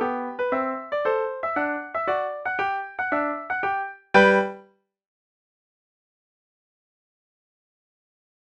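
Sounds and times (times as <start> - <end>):
solo piano march: 0.0 - 4.6.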